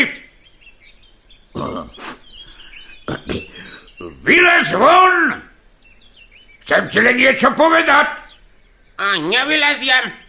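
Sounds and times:
faint hiss: 0:00.0 - 0:10.2
pig grunting: 0:01.5 - 0:04.3
speech: 0:04.3 - 0:05.4, 0:06.7 - 0:08.2, 0:09.0 - 0:10.2.

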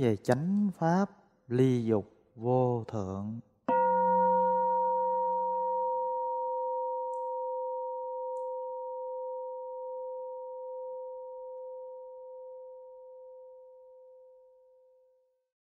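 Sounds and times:
speech: 0:00.0 - 0:03.5
deep temple bell being struck: 0:03.7 - 0:09.3.

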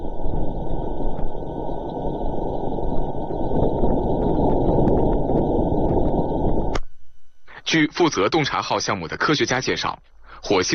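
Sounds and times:
sped-up Martian wind from InSight pressure sensor: 0:00.0 - 0:06.8
faint high-pitched hums: 0:00.0 - 0:10.7
speech: 0:07.7 - 0:10.7.

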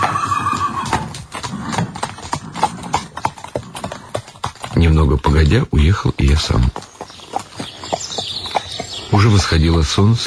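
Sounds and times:
horse neighing: 0:00.0 - 0:04.2
speech: 0:04.8 - 0:06.9, 0:09.1 - 0:10.2.

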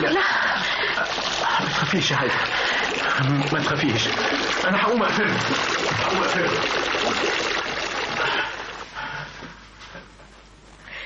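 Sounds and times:
shower running water: 0:00.6 - 0:09.0
speech: 0:01.9 - 0:02.6, 0:03.2 - 0:07.6.

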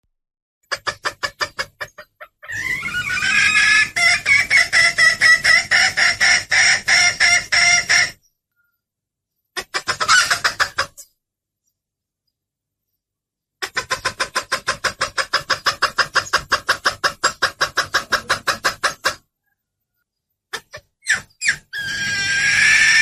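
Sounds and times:
bird lure calls with clucking, chattering and whistles: 0:00.6 - 0:08.2, 0:09.6 - 0:11.1, 0:13.6 - 0:19.6, 0:20.5 - 0:22.9.

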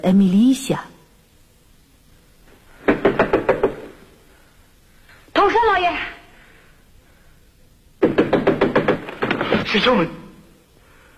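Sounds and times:
speech: 0:00.0 - 0:00.9, 0:09.7 - 0:10.2
knocking on a door in a staged drama: 0:02.8 - 0:04.0, 0:08.0 - 0:09.5.

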